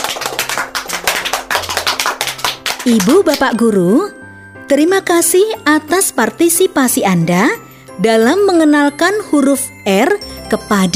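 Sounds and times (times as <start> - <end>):
clapping for children in a classroom lesson: 0.0 - 3.5
speech: 2.9 - 10.9.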